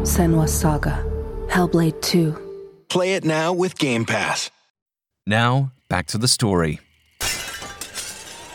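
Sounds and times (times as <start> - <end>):
speech: 0.2 - 4.6, 5.3 - 7.4
window breaking: 7.2 - 8.5.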